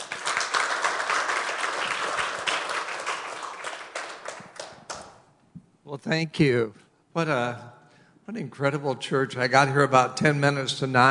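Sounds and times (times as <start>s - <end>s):
church audience applauding to welcome a speaker: 0.0s - 5.1s
speech: 5.9s - 11.0s.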